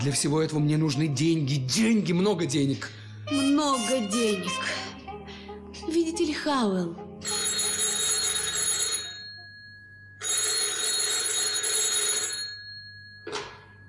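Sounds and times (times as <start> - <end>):
speech: 0.0 - 4.9, 5.8 - 7.4
telephone bell ringing in a radio drama: 7.2 - 13.8.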